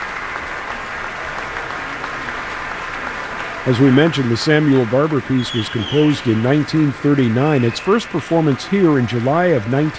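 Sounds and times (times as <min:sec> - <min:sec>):
concert audience applause: 0:00.0 - 0:09.9
speech: 0:03.6 - 0:09.9.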